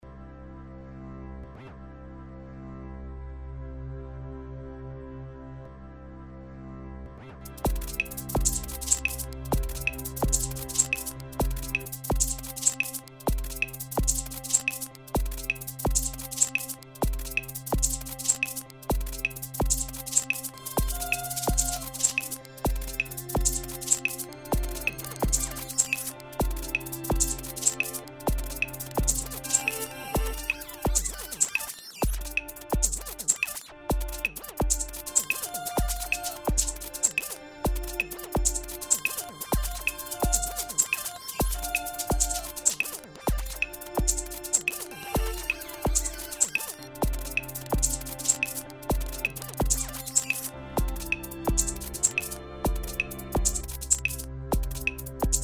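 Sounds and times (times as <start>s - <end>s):
instrumental music: 7.4s - 55.4s.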